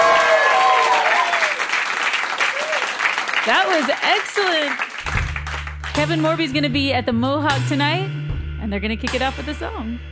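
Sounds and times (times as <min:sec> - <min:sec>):
big live studio audience applauding at a radio live music session: 0:00.0 - 0:06.0
speech: 0:03.4 - 0:04.9, 0:06.0 - 0:10.1.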